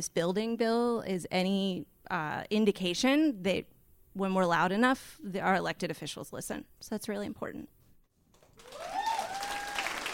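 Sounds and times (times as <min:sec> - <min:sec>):
speech: 0:00.0 - 0:07.8
audience applause: 0:08.6 - 0:10.1
high whistle or cheer: 0:08.7 - 0:10.1.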